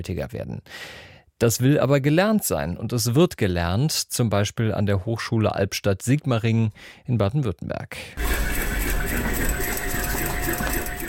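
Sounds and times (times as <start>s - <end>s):
speech: 0.0s - 8.5s
sewing machines stitching in a university clothing lab in Baden-Württemberg: 8.2s - 11.0s.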